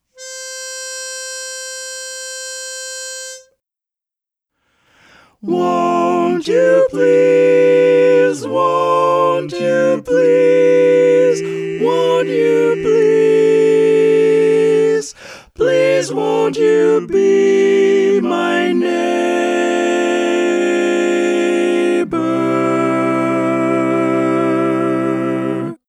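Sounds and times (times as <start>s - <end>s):
barbershop tenor singing: 5.3s - 25.8s.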